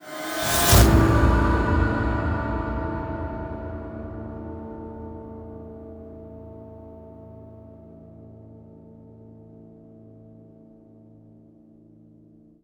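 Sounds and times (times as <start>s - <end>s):
musical stinger: 0.0s - 5.8s.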